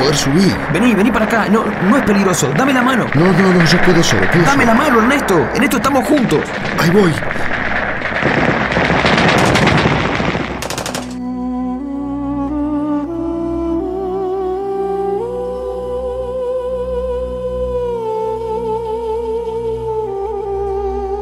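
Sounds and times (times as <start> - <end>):
slow sustained music with rising tones: 0.0 - 4.0, 11.2 - 21.2
speech: 0.0 - 7.6
rapid gunfire during an attack: 0.0 - 11.2.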